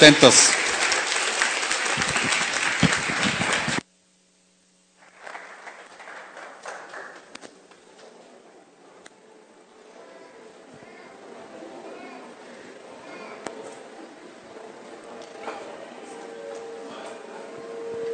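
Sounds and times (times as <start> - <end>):
audience applause: 0.0 - 3.8, 5.0 - 7.3.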